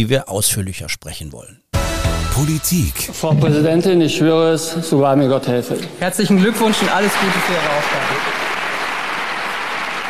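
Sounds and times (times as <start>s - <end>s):
speech: 0.0s - 1.6s, 2.4s - 8.3s
long applause in parliament: 6.4s - 10.0s.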